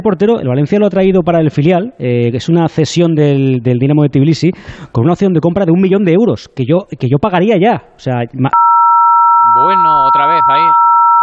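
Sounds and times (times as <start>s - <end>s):
speech: 0.0s - 8.6s
loud beep tone: 8.6s - 11.2s.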